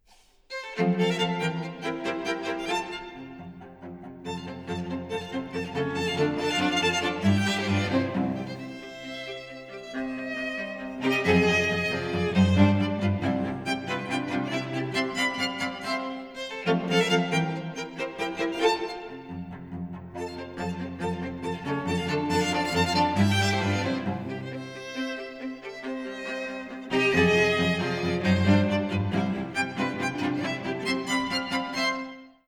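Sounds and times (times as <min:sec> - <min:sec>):
string quartet playing a menuet presto: 0:00.6 - 0:32.3.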